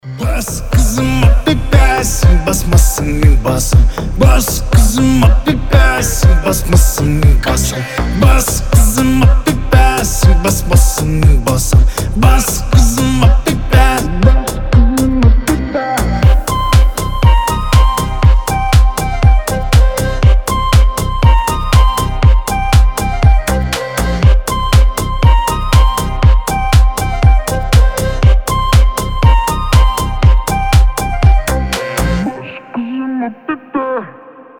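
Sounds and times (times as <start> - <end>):
bass: 0.0 - 32.5.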